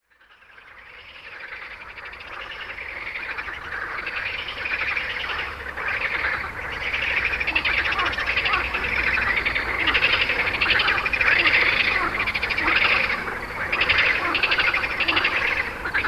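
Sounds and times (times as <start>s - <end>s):
frogs calling in a dense chorus of pulsed croaks and trills: 0.0s - 16.0s.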